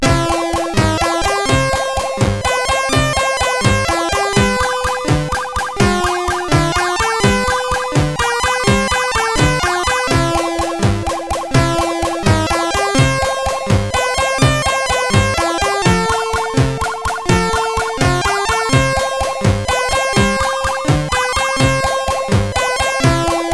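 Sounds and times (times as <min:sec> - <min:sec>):
SID CSG8580R5 chip music: 0:00.0 - 0:23.5.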